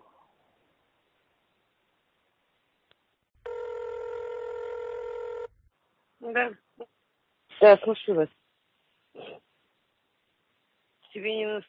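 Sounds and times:
telephone ringing: 3.4 - 5.6
speech: 6.2 - 7.0, 7.6 - 8.4, 11.2 - 11.6.

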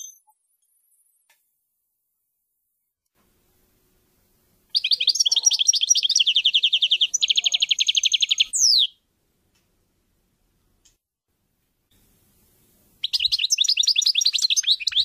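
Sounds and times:
European goldfinch twittering song: 4.7 - 8.9, 13.0 - 15.0.

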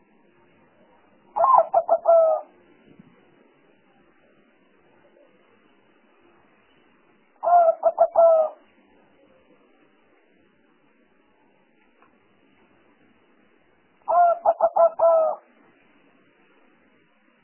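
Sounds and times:
faint background hiss: 0.0 - 17.4
spotted dove cooing: 1.3 - 2.5, 7.4 - 8.6, 14.1 - 15.4.

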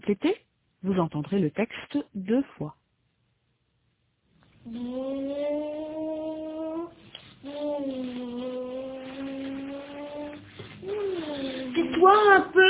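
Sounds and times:
speech: 0.0 - 2.8, 4.6 - 6.2, 12.0 - 12.6
child imitating an airplane with voice: 4.7 - 12.5.

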